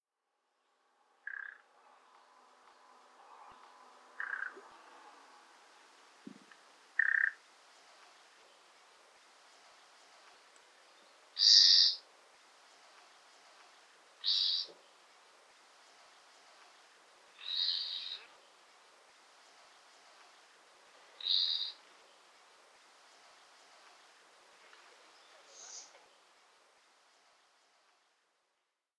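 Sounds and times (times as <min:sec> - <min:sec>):
faint steady background hiss: 0:00.0 - 0:28.9
common nightingale calls: 0:01.2 - 0:01.6, 0:04.2 - 0:04.6, 0:07.0 - 0:07.4, 0:11.0 - 0:12.0, 0:14.2 - 0:14.8, 0:17.3 - 0:18.4, 0:21.2 - 0:21.8, 0:25.2 - 0:26.0.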